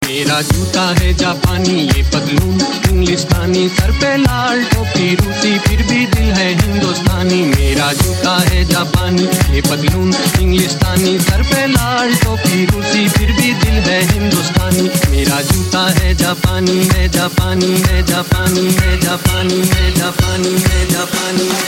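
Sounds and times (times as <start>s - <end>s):
Indian club remix music: 0.0s - 21.6s.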